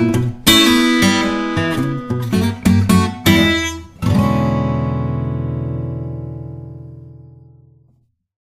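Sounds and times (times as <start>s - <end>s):
country blues music: 0.0s - 6.7s.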